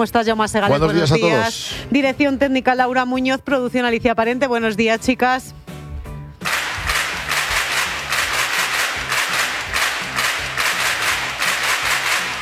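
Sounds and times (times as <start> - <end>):
speech: 0.0 - 5.6
crowd applause: 6.4 - 12.4.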